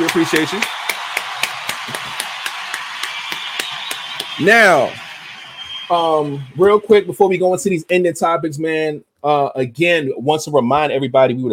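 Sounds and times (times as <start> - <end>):
round of applause: 0.0 - 6.7
speech: 0.1 - 0.8, 4.4 - 5.0, 5.9 - 11.5.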